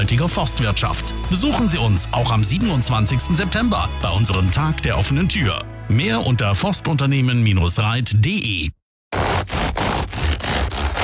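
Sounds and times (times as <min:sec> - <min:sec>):
speech: 0:00.1 - 0:08.8
crusty bread crackling and crunching: 0:09.2 - 0:11.0.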